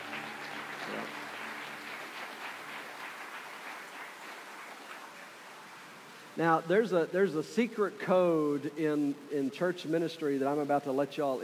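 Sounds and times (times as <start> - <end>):
crowd applauding: 0.0 - 5.6
speech: 0.9 - 1.2, 6.4 - 11.4.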